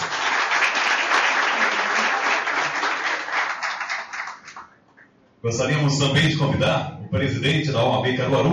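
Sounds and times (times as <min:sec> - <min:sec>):
crowd applause: 0:00.0 - 0:04.7
speech: 0:05.4 - 0:08.5.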